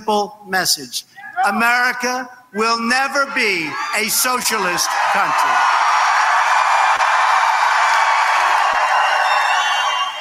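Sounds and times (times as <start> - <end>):
speech: 0.1 - 5.8
large audience applauding and cheering: 3.6 - 10.1.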